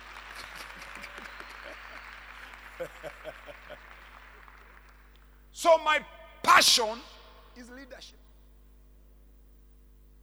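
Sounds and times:
laughter: 0.0 - 5.1
applause: 0.0 - 7.8
speech: 5.6 - 8.2.

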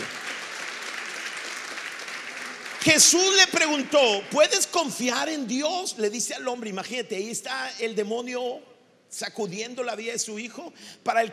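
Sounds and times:
audience applause: 0.0 - 3.9
speech: 2.8 - 11.3.

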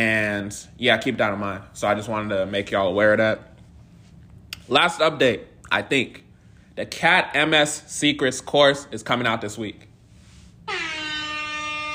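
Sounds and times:
speech: 0.0 - 3.5, 4.7 - 6.2, 6.8 - 9.9
air horn blast: 10.6 - 11.9.

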